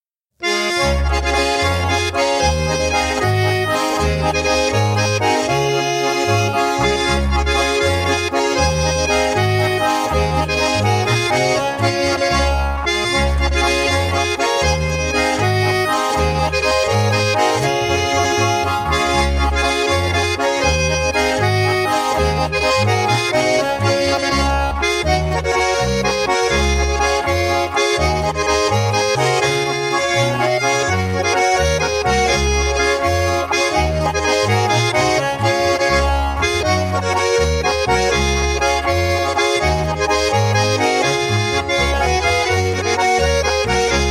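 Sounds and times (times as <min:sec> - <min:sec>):
waltz music: 0:00.4 - 0:44.0.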